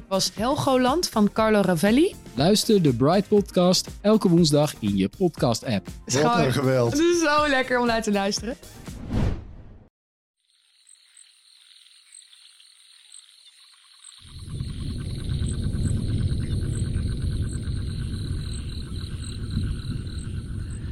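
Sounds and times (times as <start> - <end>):
speech: 0.1 - 8.8
crickets chirping in a forest: 10.4 - 20.8.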